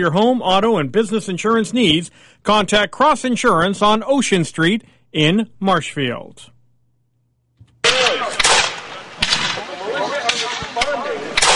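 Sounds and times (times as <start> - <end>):
speech: 0.0 - 6.5
gunfire at a battle reenactment: 7.8 - 11.5
voices shouting and talking: 7.8 - 11.5.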